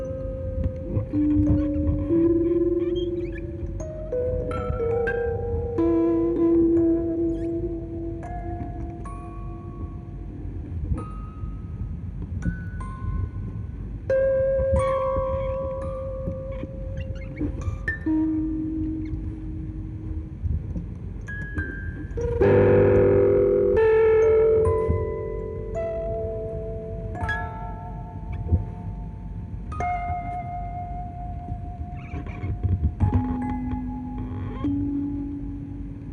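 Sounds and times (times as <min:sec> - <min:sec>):
two music boxes recorded on tape through a reel-to-reel loudspeaker: 0:00.0 - 0:36.1.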